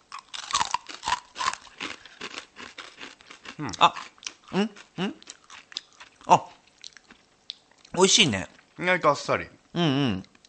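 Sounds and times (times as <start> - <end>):
crunchy chewing on a brown rice snack: 0.0 - 8.7
speech: 3.6 - 5.3, 6.3 - 6.5, 8.0 - 10.3.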